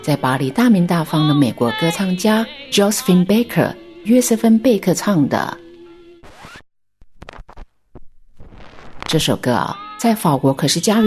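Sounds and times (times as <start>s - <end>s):
speech: 0.0s - 5.6s, 9.1s - 11.0s
vinyl record needle scratching, hissing and crackling: 6.2s - 9.8s.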